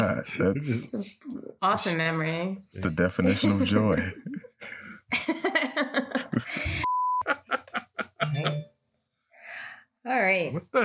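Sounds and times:
people laughing: 0:00.0 - 0:00.8, 0:02.8 - 0:08.6
people chattering: 0:00.0 - 0:04.4, 0:08.2 - 0:08.6
speech: 0:00.1 - 0:06.5, 0:10.0 - 0:10.8
phone notification beep: 0:08.2 - 0:08.7.

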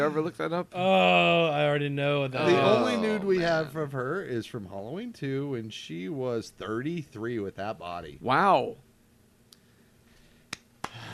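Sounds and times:
speech: 0:00.0 - 0:08.9
sharp hand claps: 0:10.5 - 0:11.1.

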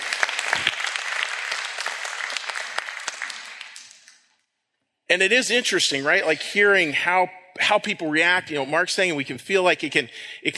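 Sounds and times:
audience applause: 0:00.0 - 0:04.1
speech: 0:05.1 - 0:10.5.

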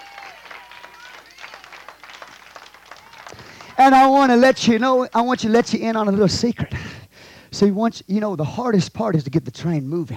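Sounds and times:
audience applause: 0:00.0 - 0:05.0
people cheering: 0:00.0 - 0:05.6
speech: 0:03.8 - 0:07.0, 0:07.6 - 0:10.1.

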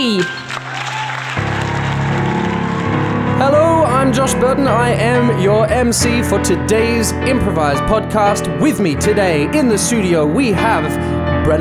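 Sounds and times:
speech: 0:00.0 - 0:00.4, 0:03.4 - 0:11.5
audience applause for the MC of an improvised musical show: 0:00.0 - 0:03.9.

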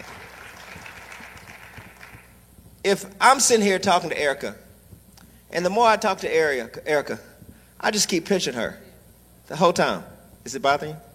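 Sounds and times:
audience clapping: 0:00.0 - 0:02.4
speech: 0:02.8 - 0:04.6, 0:05.5 - 0:08.8, 0:09.5 - 0:11.1.

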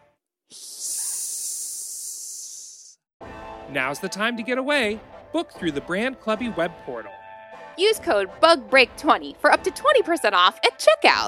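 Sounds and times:
Madagascar hissing cockroach hissing: 0:00.5 - 0:03.0
speech: 0:03.7 - 0:07.2, 0:07.8 - 0:11.2.

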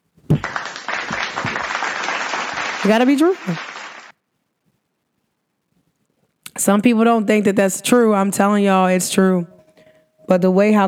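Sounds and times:
hand clapping: 0:00.3 - 0:04.1
speech: 0:02.8 - 0:03.7, 0:06.6 - 0:09.6, 0:10.3 - 0:10.8.

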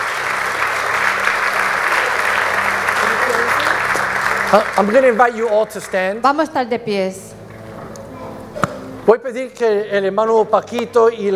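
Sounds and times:
audience applauding: 0:00.0 - 0:06.2
speech: 0:04.5 - 0:07.3, 0:09.1 - 0:11.3.

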